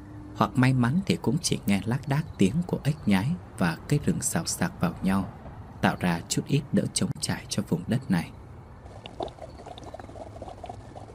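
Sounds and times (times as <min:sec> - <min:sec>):
speech: 0:00.4 - 0:08.4
water bubbling up in stagnant pool: 0:08.8 - 0:11.1.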